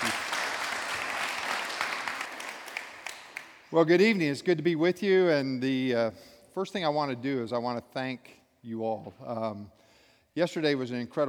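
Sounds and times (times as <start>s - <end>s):
Appalachia Service Project audience applauding: 0.0s - 3.7s
speech: 3.7s - 9.8s, 10.4s - 11.2s.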